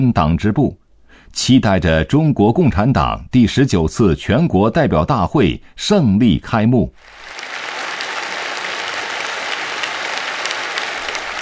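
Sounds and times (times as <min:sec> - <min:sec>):
speech: 0:00.0 - 0:07.5
warm applause in the Liangjiahe village party branch meeting room: 0:07.0 - 0:11.4.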